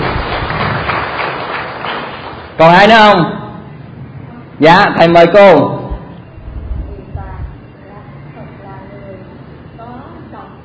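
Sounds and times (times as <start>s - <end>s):
applause: 0.0s - 2.6s
speech: 2.6s - 3.4s, 4.6s - 5.8s.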